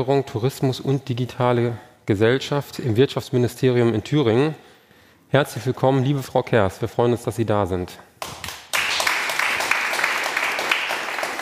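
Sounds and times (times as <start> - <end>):
speech: 0.0 - 4.7, 5.3 - 8.4
audience applause: 8.4 - 11.4.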